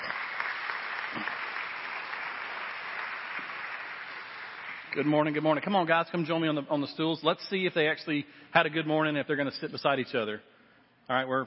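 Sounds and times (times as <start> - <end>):
audience applause welcoming families to the stage at a parenting panel: 0.0 - 5.0
speech: 5.0 - 10.5, 11.1 - 11.4.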